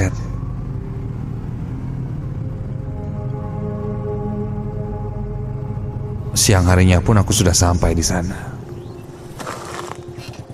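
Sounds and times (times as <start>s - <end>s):
motorcycle engine droning while riding to Garut: 0.0s - 10.5s
speech: 6.4s - 8.5s.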